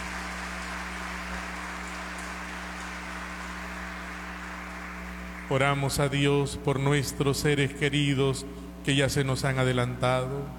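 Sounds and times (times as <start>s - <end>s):
audience applauding: 0.0s - 5.9s
speech: 5.5s - 10.5s.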